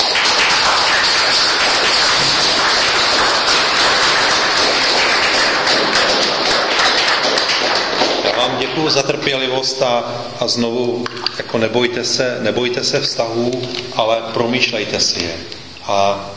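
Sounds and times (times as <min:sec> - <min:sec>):
audience applause: 0:00.0 - 0:09.7
speech: 0:08.8 - 0:16.3.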